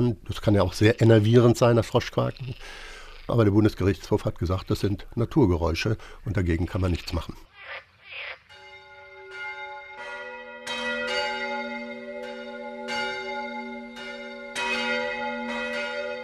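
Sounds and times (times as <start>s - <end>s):
speech: 0.0s - 7.5s
church bells ringing: 8.5s - 16.2s.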